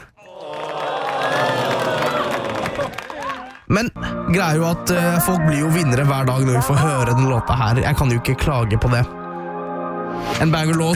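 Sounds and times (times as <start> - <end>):
crowd applause and cheering for a daily quiz winner: 0.2 - 3.7
speech: 3.7 - 9.2, 10.4 - 10.9.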